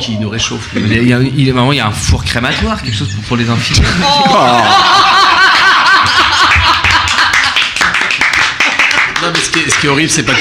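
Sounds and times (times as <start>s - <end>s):
speech: 0.0s - 6.2s, 9.4s - 10.3s
crowd laughing: 3.8s - 9.4s
crowd applauding: 4.4s - 10.3s.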